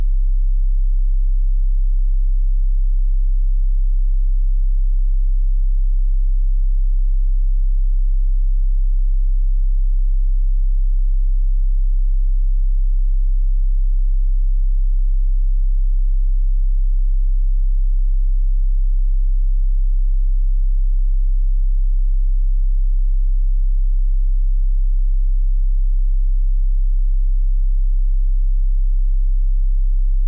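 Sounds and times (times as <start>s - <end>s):
33 Hz Tesla tone: 0.0s - 30.2s.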